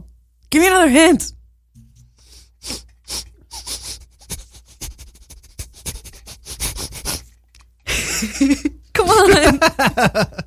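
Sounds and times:
speech: 0:00.5 - 0:01.4, 0:09.2 - 0:10.4
person sniffing something to smell it: 0:02.1 - 0:07.4
laughter: 0:07.9 - 0:10.4.

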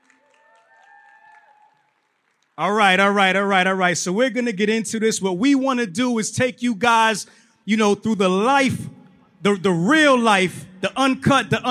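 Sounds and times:
audience applause: 0:00.0 - 0:02.6
speech: 0:02.6 - 0:11.6.

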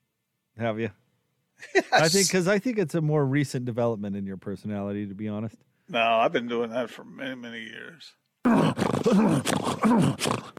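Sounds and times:
speech: 0:00.6 - 0:01.0, 0:01.6 - 0:10.5
person grunting: 0:08.5 - 0:10.5.

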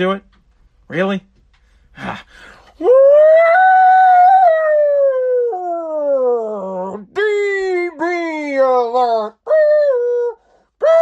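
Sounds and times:
speech: 0:00.0 - 0:00.3, 0:00.9 - 0:01.3, 0:02.0 - 0:03.7
voice imitating a siren: 0:03.4 - 0:10.0, 0:10.8 - 0:11.0.

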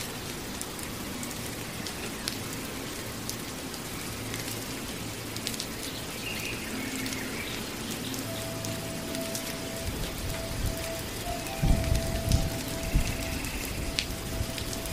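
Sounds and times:
rain pattering in a tropical rainforest: 0:00.0 - 0:14.9
thin even tone: 0:08.2 - 0:14.9.

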